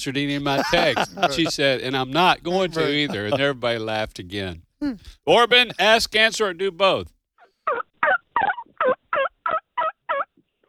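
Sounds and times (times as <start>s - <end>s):
speech: 0.0s - 7.2s
laughter: 0.3s - 3.8s, 4.8s - 6.2s
turkey call blown to imitate a turkey: 7.7s - 10.3s.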